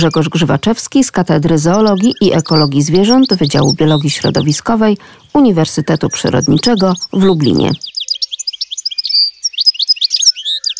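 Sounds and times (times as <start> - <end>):
speech: 0.0 - 8.0
European goldfinch singing: 0.0 - 10.7.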